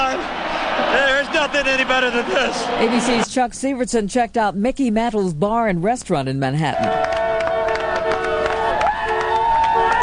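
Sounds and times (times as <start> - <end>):
street crowd cheering: 0.0 - 3.3, 6.8 - 10.0
speech: 1.4 - 7.1.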